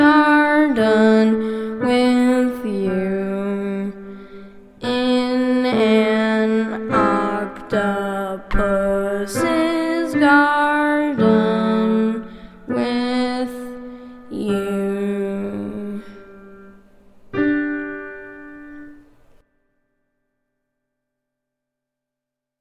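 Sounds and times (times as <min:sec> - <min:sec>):
person singing: 0:00.0 - 0:16.6.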